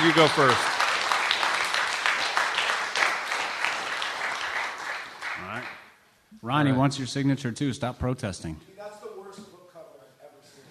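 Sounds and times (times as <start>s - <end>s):
speech: 0.0s - 0.7s, 6.4s - 9.0s
crowd applauding: 0.0s - 5.9s.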